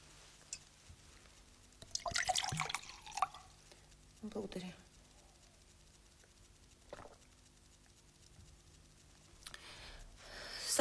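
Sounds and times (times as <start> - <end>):
water poured into a glass: 1.8 - 3.5
speech: 4.2 - 4.9.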